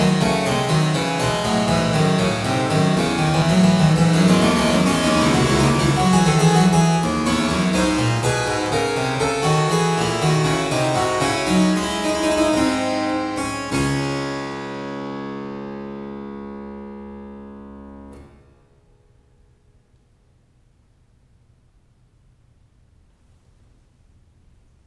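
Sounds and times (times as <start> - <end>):
keyboard prelude and fugue in D minor: 0.0 - 18.5.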